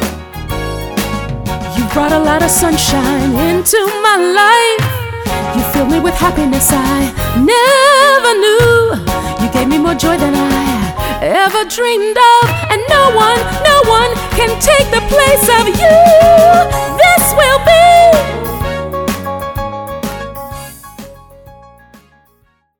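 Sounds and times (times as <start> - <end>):
person singing: 1.7 - 18.6.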